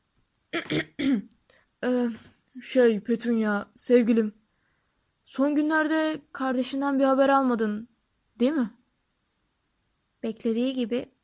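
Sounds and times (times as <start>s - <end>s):
man's nervous throat clearing: 0.6s - 1.3s
speech: 0.7s - 4.4s, 5.3s - 8.8s, 10.2s - 11.2s.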